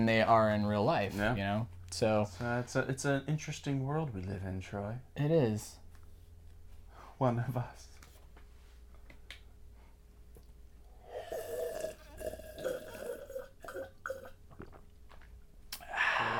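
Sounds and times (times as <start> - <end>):
speech: 0.0 - 5.8, 7.2 - 7.9
satisfied exhale or small burp: 11.0 - 14.4, 15.8 - 16.3
person gulping water: 11.0 - 16.3.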